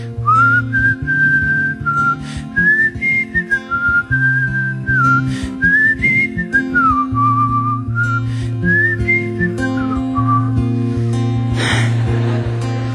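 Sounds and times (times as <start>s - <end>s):
person whistling a soft wavering melody: 0.1s - 10.7s
breathy burst: 2.2s - 2.6s, 5.2s - 5.7s, 8.2s - 8.6s, 10.8s - 12.2s
laughter: 11.6s - 12.9s.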